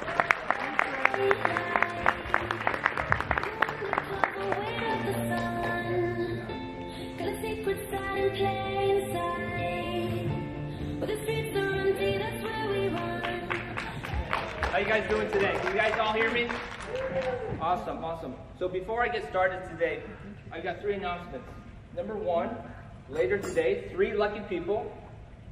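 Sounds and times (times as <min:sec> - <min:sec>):
audience applause: 0:00.0 - 0:05.8, 0:13.2 - 0:17.6
loud sustained music: 0:01.0 - 0:14.8
speech: 0:14.9 - 0:16.7, 0:17.7 - 0:25.0.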